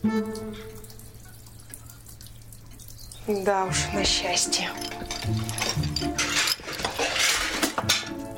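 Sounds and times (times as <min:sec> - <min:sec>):
speech: 0:00.0 - 0:00.9, 0:03.3 - 0:05.6
crockery crashing and clattering: 0:04.6 - 0:08.2
plates shattering on a hard floor: 0:04.8 - 0:08.2.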